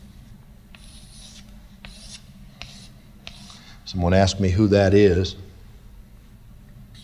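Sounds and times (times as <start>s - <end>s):
scratchy strokes of drawing on a board: 0.7s - 4.0s
speech: 3.9s - 5.4s.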